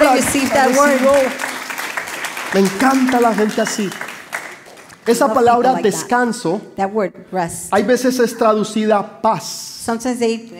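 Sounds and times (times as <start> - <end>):
audience applause: 0.0 - 5.4
speech: 0.1 - 1.5, 2.5 - 4.1, 5.0 - 10.5.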